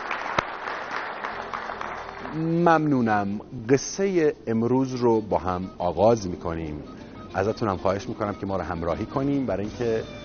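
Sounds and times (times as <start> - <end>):
crowd applauding the national volleyball team: 0.0 - 2.9
speech: 2.3 - 10.2.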